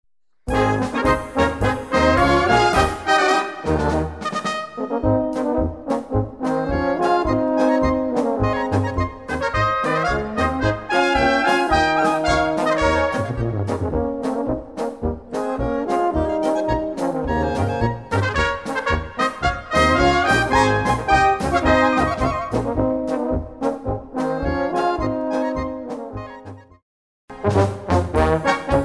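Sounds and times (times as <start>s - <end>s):
polka music: 0.5s - 28.8s.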